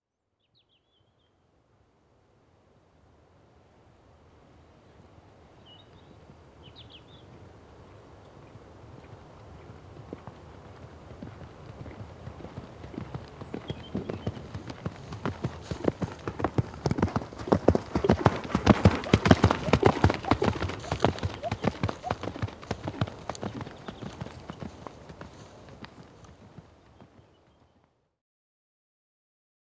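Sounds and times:
horse galloping on soft ground: 8.3s - 27.6s.

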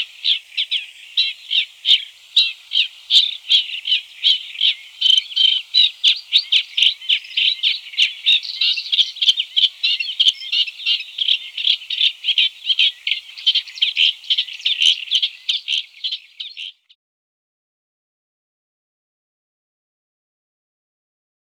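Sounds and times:
Caspian reed warbler chattering song: 0.0s - 17.0s.

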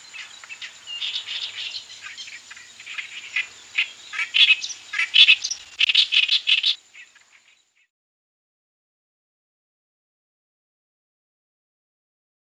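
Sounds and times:
Indian reed warbler grating chatter: 0.0s - 7.1s.

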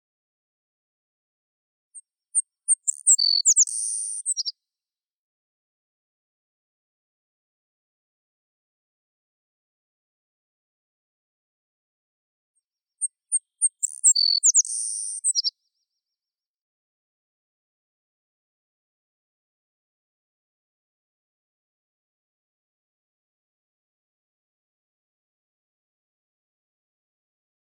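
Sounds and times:
prairie sparrow song: 2.0s - 4.5s, 13.0s - 15.9s.

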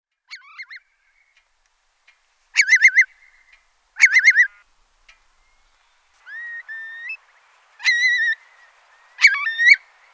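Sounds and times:
Eurasian curlew whistled calls: 2.6s - 4.7s, 5.4s - 7.2s, 7.8s - 10.1s.

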